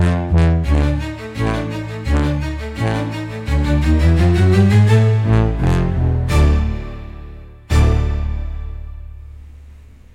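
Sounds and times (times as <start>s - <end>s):
tuba tumble run in comical slapstick orchestra music: 0.0s - 6.8s
comical orchestra music for slapstick gag scene: 0.0s - 9.2s.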